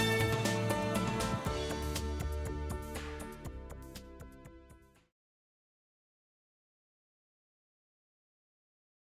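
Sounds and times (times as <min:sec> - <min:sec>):
dulcimer: 0:00.0 - 0:03.7.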